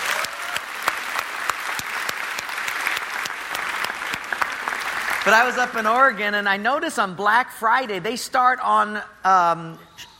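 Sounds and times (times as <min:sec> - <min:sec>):
audience applause: 0:00.0 - 0:06.1
speech: 0:05.2 - 0:09.9.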